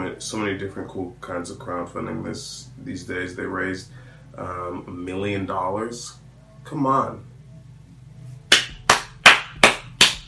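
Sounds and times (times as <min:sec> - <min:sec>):
speech: 0:00.2 - 0:07.3
applause, hands clapping: 0:08.5 - 0:10.2.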